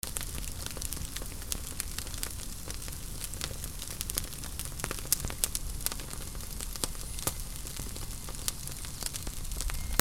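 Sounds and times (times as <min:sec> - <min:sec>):
fire: 0:00.0 - 0:09.9.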